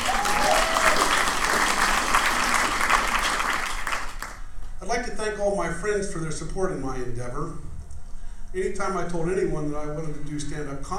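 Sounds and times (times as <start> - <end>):
audience applause: 0.0 - 4.4
speech: 5.0 - 7.7, 8.5 - 10.9.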